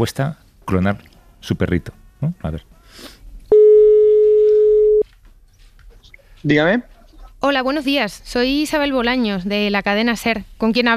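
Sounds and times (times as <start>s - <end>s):
speech: 0.0s - 3.2s, 6.4s - 10.9s
telephone ringback tone on an outgoing call: 3.5s - 5.0s.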